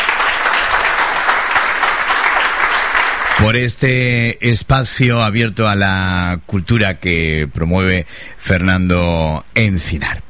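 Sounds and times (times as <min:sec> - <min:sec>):
loud applause and ovation at a cultural event: 0:00.0 - 0:03.6
speech: 0:03.4 - 0:10.2.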